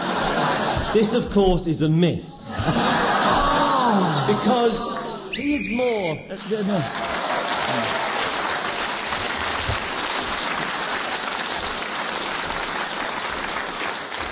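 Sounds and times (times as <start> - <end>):
laughter: 0.0 - 1.4, 2.4 - 5.3, 6.5 - 8.2
speech: 0.9 - 2.8, 4.3 - 8.1
audience applause: 2.6 - 5.3, 6.3 - 14.3.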